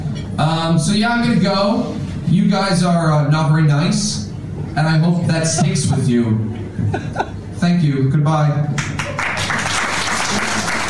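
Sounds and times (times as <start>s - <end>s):
speech: 0.4s - 4.2s, 4.8s - 8.9s
laughter: 5.4s - 7.6s
audience applauding: 8.8s - 10.8s.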